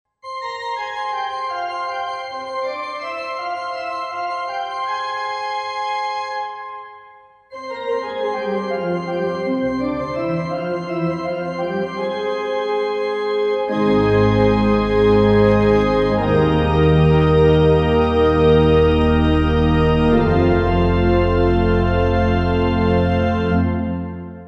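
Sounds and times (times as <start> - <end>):
massive orchestral organ: 0.2 - 24.4.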